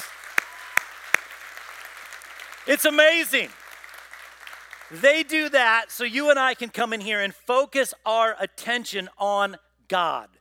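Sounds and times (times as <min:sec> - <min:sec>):
audience clapping: 0:00.0 - 0:05.9
speech: 0:02.6 - 0:03.6, 0:04.9 - 0:10.3.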